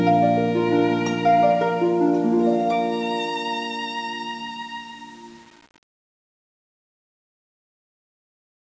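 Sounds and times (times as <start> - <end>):
wedding march on harp and violin: 0.0 - 5.4.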